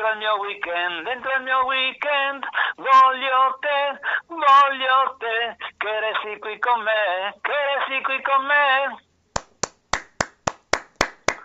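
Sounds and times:
speech: 0.0 - 9.1
live hand clapping: 9.4 - 11.4.

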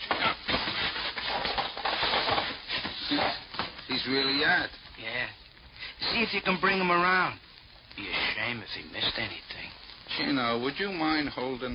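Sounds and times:
unconscious man dragged over to a chair: 0.2 - 3.7
speech: 4.1 - 5.4, 6.1 - 7.4, 8.0 - 11.7.

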